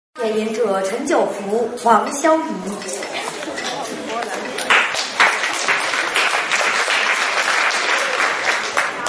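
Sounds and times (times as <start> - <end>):
speech: 0.3 - 3.7
audience applause: 3.3 - 9.0.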